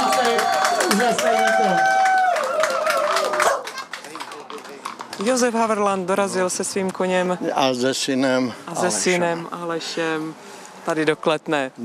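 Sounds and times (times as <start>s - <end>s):
crowd clapping for arriving riders: 0.0s - 5.6s
speech: 0.9s - 2.0s, 5.2s - 11.8s.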